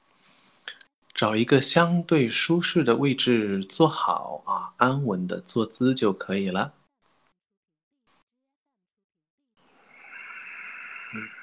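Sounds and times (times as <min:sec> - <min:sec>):
slow deliberate breathing: 0:00.1 - 0:00.9, 0:09.6 - 0:11.4
speech: 0:01.2 - 0:06.8.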